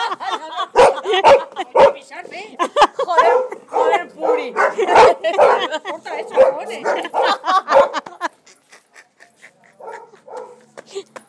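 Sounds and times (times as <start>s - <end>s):
laughter: 0.0s - 3.8s, 4.6s - 11.2s
dog barking: 0.7s - 2.0s, 3.2s - 8.1s, 9.8s - 10.6s.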